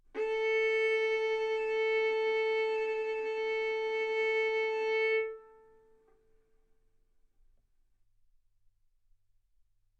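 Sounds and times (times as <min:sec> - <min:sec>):
violin bowed mezzo-forte on the A string, A4 and B4: 0:00.1 - 0:05.9.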